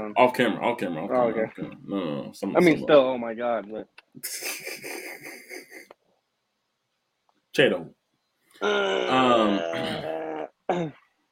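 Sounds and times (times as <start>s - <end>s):
speech: 0.0s - 6.0s, 7.6s - 8.0s, 8.6s - 11.0s
throat clearing cough: 9.7s - 11.0s.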